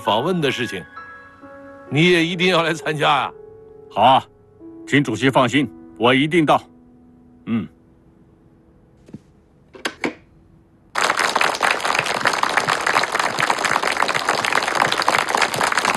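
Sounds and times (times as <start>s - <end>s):
speech: 0.0s - 1.0s, 1.9s - 4.3s, 4.9s - 6.7s, 7.4s - 7.8s
large audience applauding: 11.0s - 15.9s.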